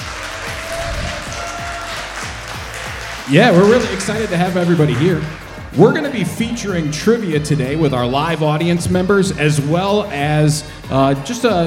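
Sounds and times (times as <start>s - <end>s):
live audience applause: 0.0s - 5.7s
speech: 3.3s - 11.6s.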